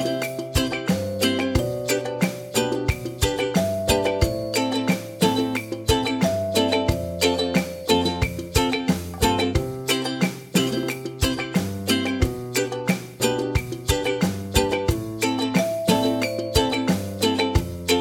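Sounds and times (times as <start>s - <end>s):
instrumental music: 0.0s - 17.9s.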